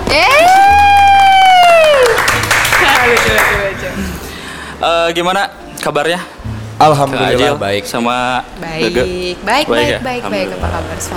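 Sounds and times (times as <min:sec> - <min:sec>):
speech: 0:00.2 - 0:00.6, 0:04.8 - 0:11.1
applause: 0:00.3 - 0:03.8.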